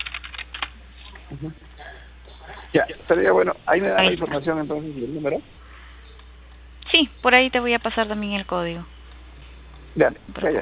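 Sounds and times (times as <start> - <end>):
keyboard typing of a WhatsApp message: 0.0 - 0.7
speech: 1.3 - 2.0, 2.7 - 5.6, 7.2 - 8.9, 10.0 - 10.6.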